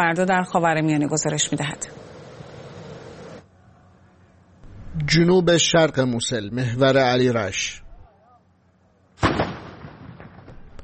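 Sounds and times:
speech: 0.0s - 2.1s, 5.1s - 7.8s
Iraqi army artillery firing on Mosul: 9.2s - 10.8s.

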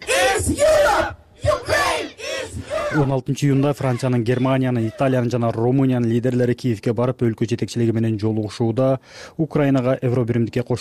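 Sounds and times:
protesters chanting at a street rally supporting Ukraine's EU membership: 0.0s - 3.1s
speech: 0.5s - 1.2s, 2.9s - 10.7s.

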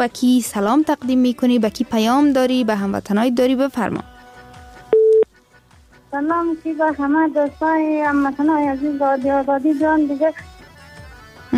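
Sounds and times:
speech: 0.0s - 4.1s, 6.1s - 10.5s
telephone tone of a radio call-in line cutting off: 4.9s - 5.3s
voice with a sustained melodic pitch: 7.5s - 11.5s.

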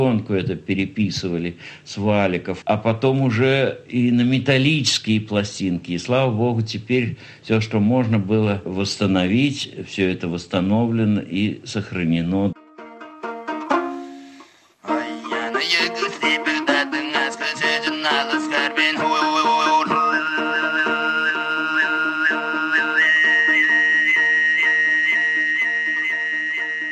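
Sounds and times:
speech: 0.0s - 12.6s
Tuvan throat singing: 14.8s - 26.9s.

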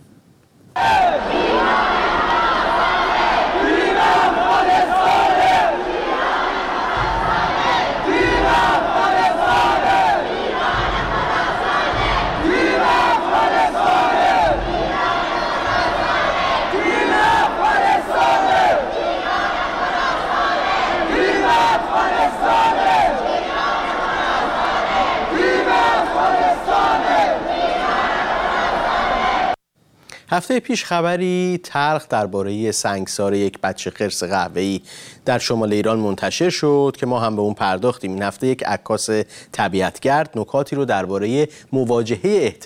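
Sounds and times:
Afghan stadium fans chanting led by female cheerleader: 0.8s - 29.6s
speech: 30.4s - 42.6s.

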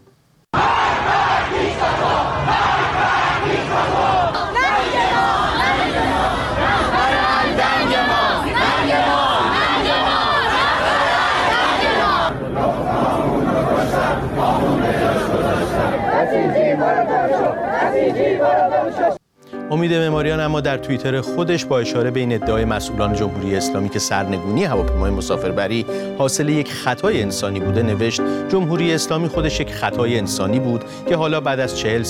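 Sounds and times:
protesters chanting slogans at street demonstration in Iran: 0.6s - 19.2s
speech: 18.9s - 32.0s.

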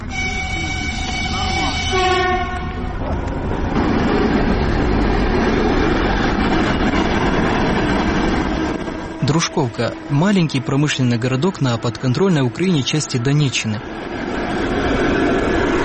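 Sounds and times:
reserve electric train horn: 0.0s - 3.0s, 8.6s - 11.2s
reserve electric train cars rumbling and rattling on departure: 0.0s - 15.8s
speech: 9.5s - 14.6s.

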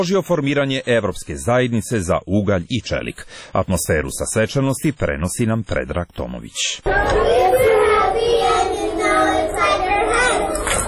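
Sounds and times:
speech: 0.0s - 7.7s
crowd chatter: 6.8s - 10.8s
kindergarten children from Podgorica singing in English in front of an EU info centre: 6.8s - 10.8s.

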